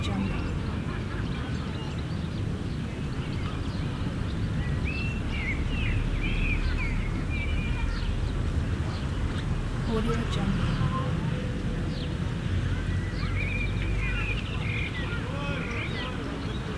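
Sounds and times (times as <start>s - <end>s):
seaside ambience with urban sounds in Portugal: 0.0s - 2.2s, 6.0s - 16.7s
urban sounds: 0.0s - 16.7s.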